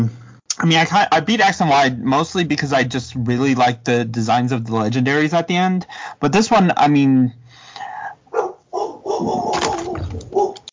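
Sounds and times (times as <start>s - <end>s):
speech: 0.0s - 7.9s, 9.2s - 9.6s
dog barking: 8.3s - 10.6s.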